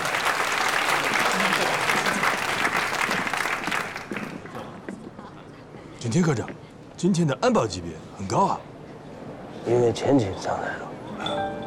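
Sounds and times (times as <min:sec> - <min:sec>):
applause from a group of students welcoming a guest: 0:00.0 - 0:04.7
speech: 0:06.1 - 0:08.7, 0:09.7 - 0:11.4.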